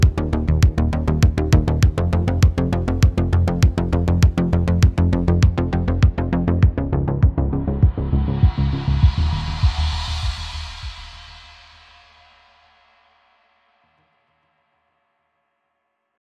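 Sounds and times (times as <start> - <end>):
deep house music: 0.0 - 11.6.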